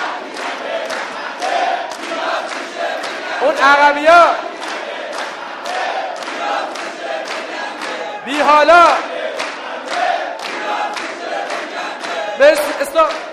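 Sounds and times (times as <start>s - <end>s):
audience clapping and shouting together: 0.0s - 13.3s
speech: 3.4s - 4.5s, 8.4s - 9.0s, 12.4s - 13.3s.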